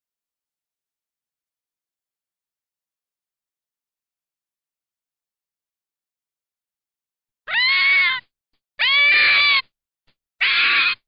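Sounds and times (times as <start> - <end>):
red fox giving hoarse wailing screams: 7.5 - 8.2, 8.8 - 9.6, 10.4 - 11.0.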